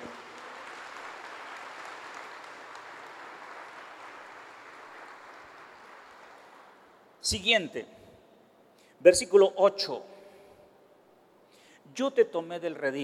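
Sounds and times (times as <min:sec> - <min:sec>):
audience applause: 0:00.0 - 0:07.0
speech: 0:07.2 - 0:08.0, 0:09.0 - 0:10.1, 0:12.0 - 0:13.0.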